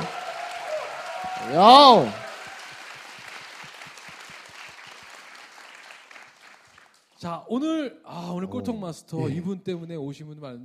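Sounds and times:
audience applause: 0.0 - 7.1
speech: 1.4 - 2.2, 7.2 - 10.6.

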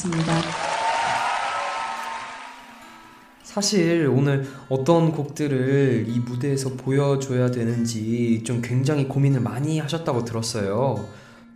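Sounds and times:
speech: 0.0 - 0.6, 3.6 - 11.2
audience cheering: 0.0 - 2.8.

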